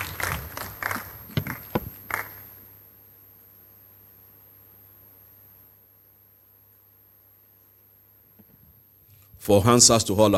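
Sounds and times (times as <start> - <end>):
audience clapping: 0.0 - 2.5
speech: 9.5 - 10.3.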